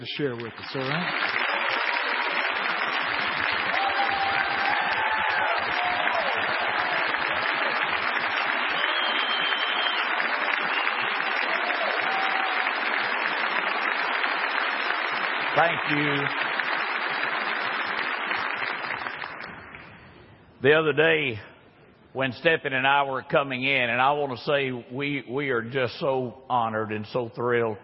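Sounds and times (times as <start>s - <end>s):
speech: 0.0s - 1.4s, 15.6s - 16.5s, 20.6s - 21.5s, 22.1s - 27.8s
audience applause welcoming a returning pastor: 0.0s - 19.9s.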